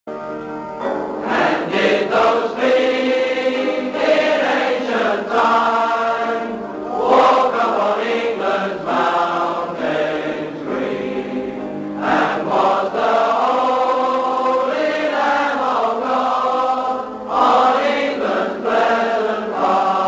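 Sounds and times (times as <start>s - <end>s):
choir singing: 0.9s - 20.0s.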